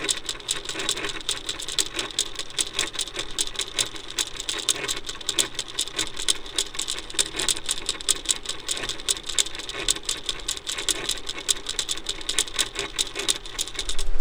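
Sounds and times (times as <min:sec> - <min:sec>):
timer ticking in a server room: 0:00.0 - 0:14.1.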